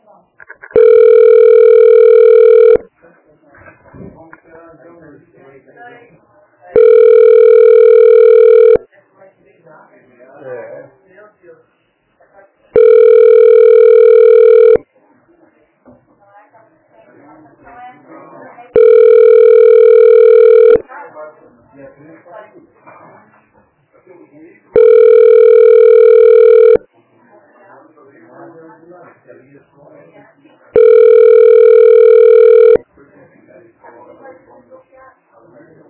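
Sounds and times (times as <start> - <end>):
telephone ringback tone while a call is transferred: 0.8 - 2.8, 6.8 - 8.8, 12.8 - 14.8, 18.8 - 20.8, 24.8 - 26.8, 30.8 - 32.8.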